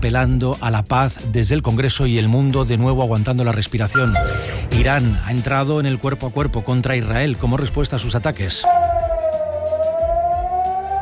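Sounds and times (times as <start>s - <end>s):
speech: 0.0s - 8.8s
air raid sirens in Tel Aviv: 8.7s - 11.0s.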